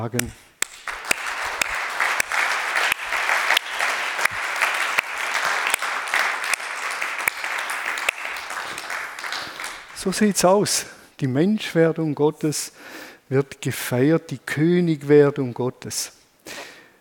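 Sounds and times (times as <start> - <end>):
speech: 0.0 - 0.5, 10.0 - 16.2
audience applause: 0.6 - 10.5.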